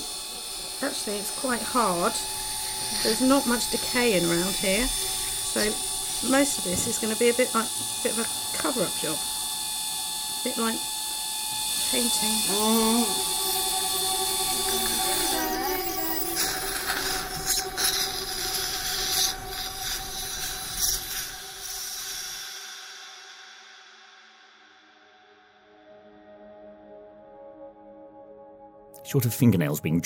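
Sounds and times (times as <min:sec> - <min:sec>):
dental drill during tooth extraction: 0:00.0 - 0:24.0
speech: 0:00.8 - 0:09.3, 0:10.4 - 0:10.9, 0:11.9 - 0:13.4, 0:29.1 - 0:30.0.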